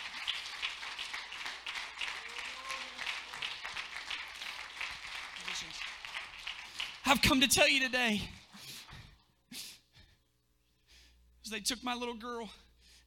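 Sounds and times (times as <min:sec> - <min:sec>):
audience clapping hands: 0:00.0 - 0:08.2
speech: 0:07.1 - 0:08.4, 0:11.5 - 0:13.0.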